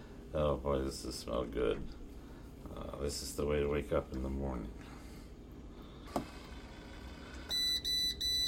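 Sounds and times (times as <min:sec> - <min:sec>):
speech: 0:00.3 - 0:02.0, 0:02.6 - 0:05.0
coffee maker high-pitched electronic finishing beeps: 0:07.1 - 0:08.4.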